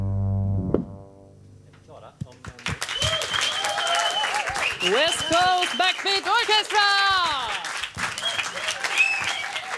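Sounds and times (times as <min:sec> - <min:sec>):
audience applause: 0:02.4 - 0:09.7
speech: 0:04.8 - 0:07.3.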